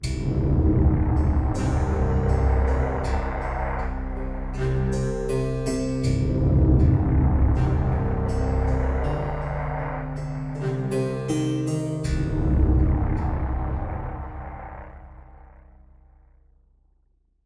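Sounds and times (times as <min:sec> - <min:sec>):
music stinger: 0:00.0 - 0:16.2.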